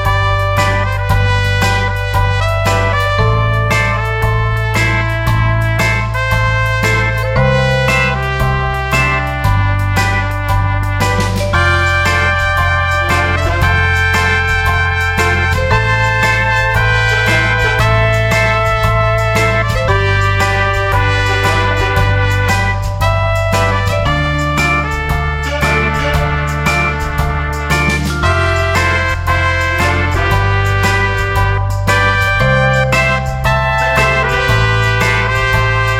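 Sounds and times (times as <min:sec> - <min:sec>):
RnB music mix: 0:00.0 - 0:35.9.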